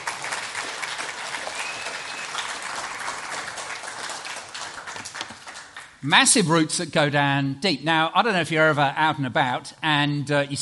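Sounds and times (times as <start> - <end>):
children clapping applause: 0.0 - 6.0
speech: 6.0 - 10.6.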